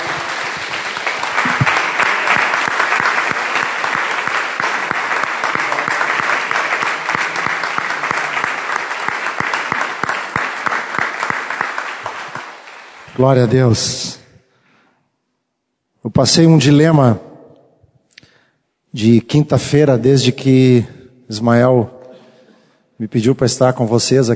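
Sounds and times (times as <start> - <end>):
audience applauding: 0.0 - 13.4
speech: 13.2 - 14.2, 16.2 - 17.2, 18.9 - 22.0, 23.0 - 24.3.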